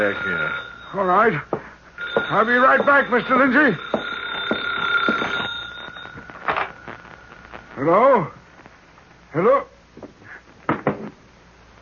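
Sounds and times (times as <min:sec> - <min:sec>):
office telephone electric bell ringing: 0:00.0 - 0:01.4, 0:02.0 - 0:07.3
speech: 0:00.0 - 0:01.6, 0:02.2 - 0:04.0, 0:07.8 - 0:08.4, 0:09.3 - 0:09.7.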